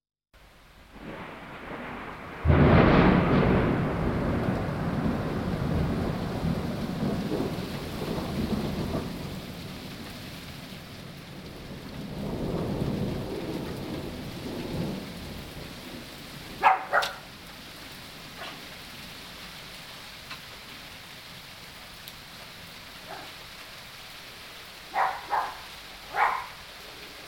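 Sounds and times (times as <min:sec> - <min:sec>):
thunder in nature: 0:01.0 - 0:10.1, 0:11.4 - 0:17.2.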